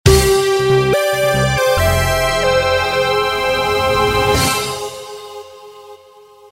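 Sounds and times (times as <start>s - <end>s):
level win jingle: 1.0s - 5.5s.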